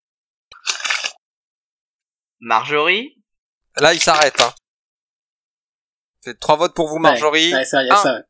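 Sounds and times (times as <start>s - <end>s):
speech: 2.4s - 3.2s, 3.8s - 4.6s, 6.2s - 8.2s
paper rustling: 3.8s - 4.6s.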